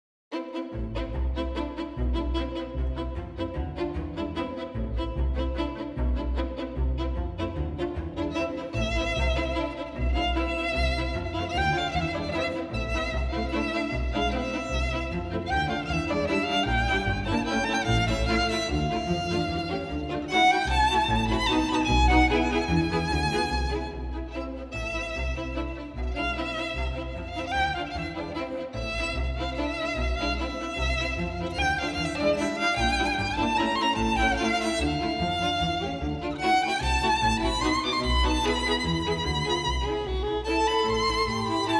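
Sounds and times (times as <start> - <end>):
violin concerto excerpt: 0.3 - 41.7.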